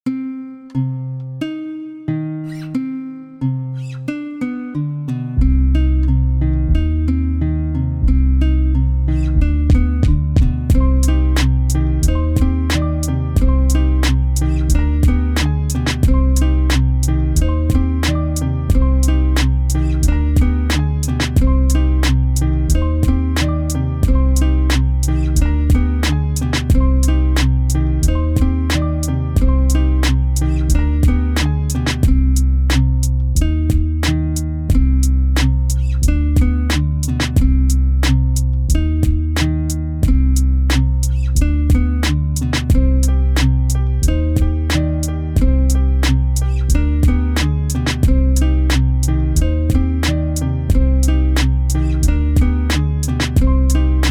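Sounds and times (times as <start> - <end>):
guitar melody: 0.0 - 54.0.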